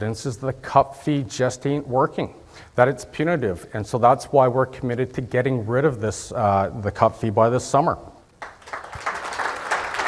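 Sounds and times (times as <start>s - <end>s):
speech: 0.0s - 8.1s
audience applause in the room: 8.4s - 10.0s.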